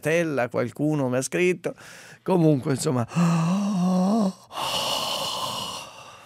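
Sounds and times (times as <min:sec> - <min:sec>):
speech: 0:00.0 - 0:05.0
person taking deep open-mouthed breath after a wavering hum: 0:03.0 - 0:06.2.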